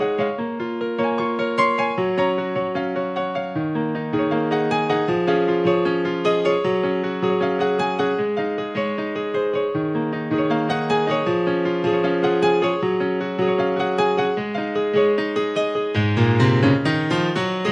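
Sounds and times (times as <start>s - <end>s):
upbeat happy piano instrumental: 0.0s - 17.7s.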